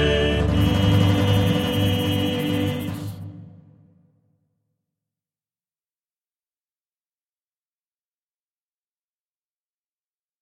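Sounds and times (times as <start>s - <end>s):
male quartet singing Christmas song: 0.0s - 3.2s.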